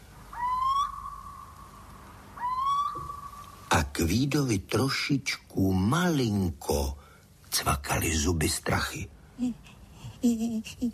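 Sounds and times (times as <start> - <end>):
little owl calling from undergrowth: 0.1 - 3.7
speech: 4.0 - 10.9.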